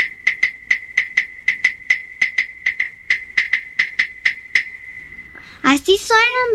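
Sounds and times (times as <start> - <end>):
claves struck together: 0.0 - 4.8
speech: 5.7 - 6.5.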